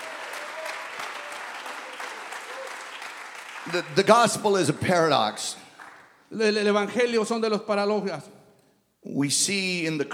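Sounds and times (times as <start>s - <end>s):
audience applause: 0.0s - 5.2s
speech: 3.6s - 5.6s, 6.3s - 8.3s, 9.0s - 10.1s.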